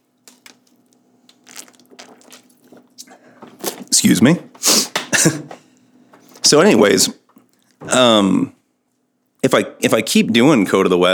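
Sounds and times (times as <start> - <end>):
person drinking water: 0.4 - 4.0
speech: 4.0 - 5.4, 6.5 - 7.2, 8.0 - 8.6, 9.4 - 11.1.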